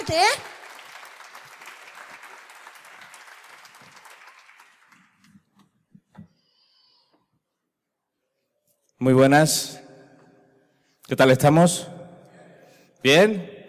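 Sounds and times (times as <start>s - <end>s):
speech: 0.0s - 0.5s, 9.0s - 9.8s, 11.1s - 12.0s, 13.0s - 13.6s
audience applause: 0.0s - 5.5s.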